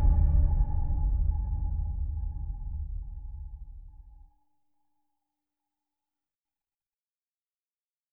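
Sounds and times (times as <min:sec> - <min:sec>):
suspense one-shot: 0:00.0 - 0:04.2.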